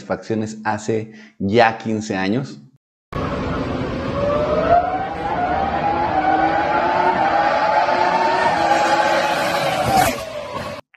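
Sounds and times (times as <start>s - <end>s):
speech: 0.1s - 2.7s
Renault R25 Formula One car engine screaming at high revs: 3.2s - 10.8s.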